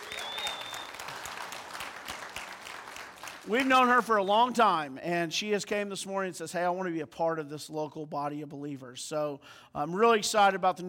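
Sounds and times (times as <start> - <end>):
audience applause: 0.0 - 4.0
speech: 3.4 - 10.8.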